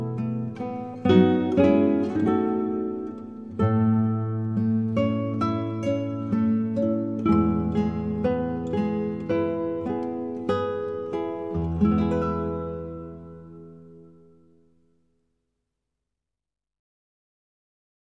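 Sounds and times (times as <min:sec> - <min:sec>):
acoustic instrumental praise music: 0:00.0 - 0:14.4.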